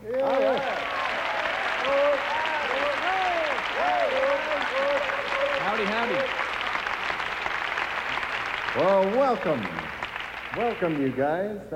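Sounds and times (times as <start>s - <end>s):
scattered cheers and whoops: 0.0s - 6.5s
crowd applauding to welcome the band: 0.0s - 11.5s
speech: 9.2s - 9.9s, 10.6s - 11.7s.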